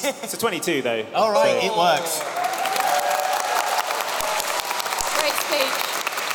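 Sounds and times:
speech: 0.0 - 2.5, 5.5 - 6.3
applause sound effect: 2.0 - 6.3.

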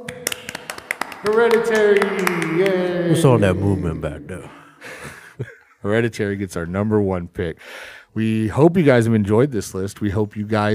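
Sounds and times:
hosts hand clapping: 0.0 - 3.6
laughter: 1.1 - 5.8
speech: 1.2 - 4.6, 5.4 - 10.7.

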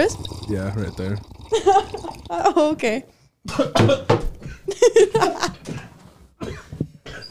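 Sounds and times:
speech: 0.0 - 6.6
person coughing harshly after drinking water down the wrong pipe: 3.5 - 4.6, 5.6 - 7.2
laughter: 4.7 - 5.6.

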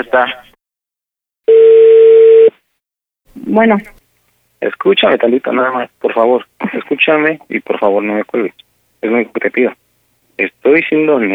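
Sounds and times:
speech: 0.0 - 0.5, 3.4 - 4.0, 4.6 - 9.8, 10.4 - 11.3
low-pitched telephone ringing tone: 1.5 - 2.5.

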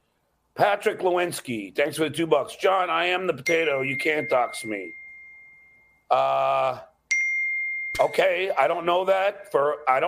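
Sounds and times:
speech: 0.6 - 5.0, 6.1 - 6.9, 8.0 - 10.0
phone notification ding: 3.5 - 6.1, 7.1 - 8.6.

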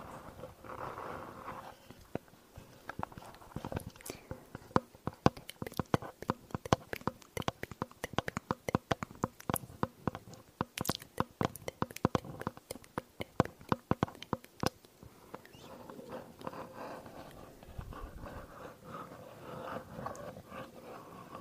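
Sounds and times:
mouth clicks and smacks: 2.9 - 18.2.

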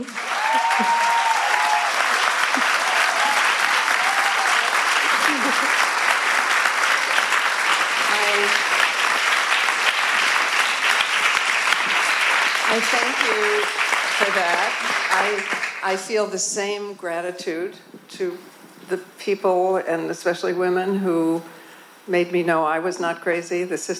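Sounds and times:
whoops: 0.0 - 5.5
large audience applause: 0.0 - 15.8
speech: 0.8 - 1.1, 12.8 - 23.9
laughter: 2.3 - 3.4, 5.0 - 6.0.

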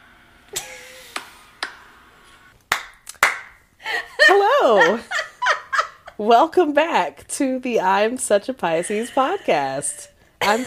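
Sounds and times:
hand clapping: 1.1 - 1.8, 2.7 - 3.6
laughter: 3.9 - 6.2, 8.8 - 10.6
speech: 6.3 - 10.6.

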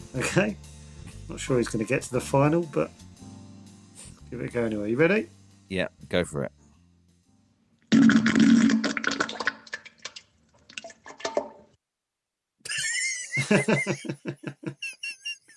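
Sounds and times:
speech: 0.1 - 0.7, 1.3 - 3.0, 4.3 - 6.6, 13.5 - 14.8
compilation of farts: 7.9 - 9.4
laughter: 12.7 - 15.5.

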